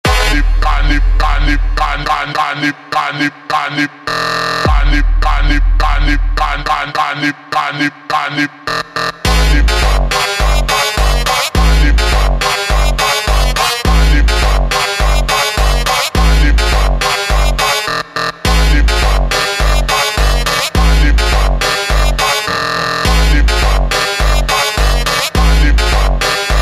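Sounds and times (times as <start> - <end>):
super slowed phonk music: 0.0 - 26.6.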